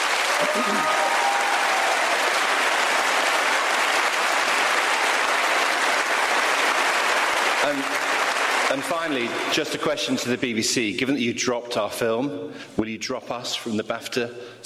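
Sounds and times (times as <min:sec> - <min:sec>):
audience applause: 0:00.0 - 0:09.8
speech: 0:00.4 - 0:01.2, 0:07.6 - 0:14.6.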